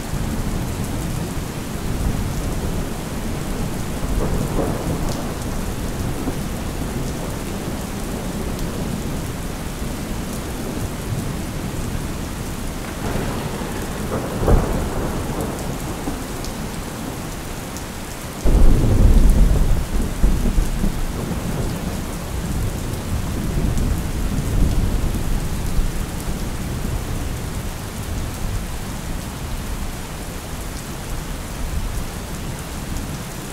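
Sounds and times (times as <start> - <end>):
rain: 0.0 - 33.5
thunder: 2.0 - 8.4, 12.8 - 17.6, 18.4 - 27.0.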